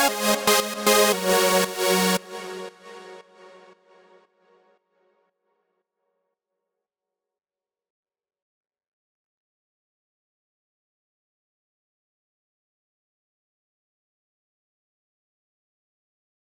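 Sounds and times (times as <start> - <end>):
lead synth in F minor: 0.0 - 3.8.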